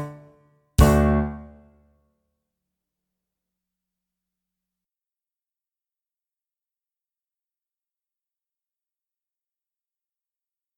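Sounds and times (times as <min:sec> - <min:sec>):
rumba accompaniment: 0:00.8 - 0:01.6.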